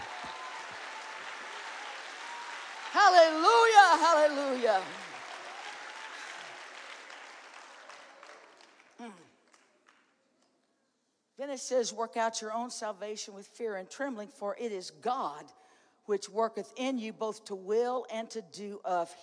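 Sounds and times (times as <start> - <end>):
audience applause: 0.0 - 10.0
speech: 3.0 - 5.0, 9.0 - 9.3, 11.5 - 19.2.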